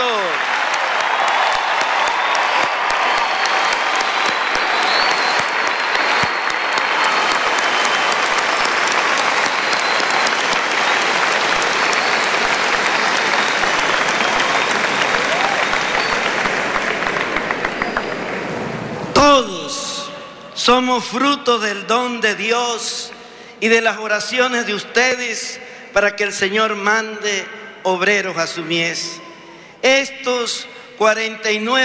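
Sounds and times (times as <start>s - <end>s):
audience applause: 0.0s - 19.2s
speech: 20.7s - 31.8s.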